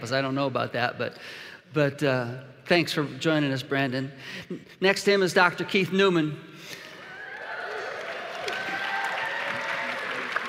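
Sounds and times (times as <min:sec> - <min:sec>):
speech: 0:00.1 - 0:06.8
audience applause: 0:07.1 - 0:10.4.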